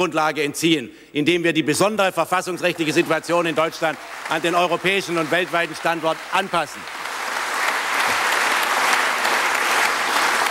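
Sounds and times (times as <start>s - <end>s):
speech: 0.0s - 7.1s
sustained audience applause: 2.7s - 10.5s.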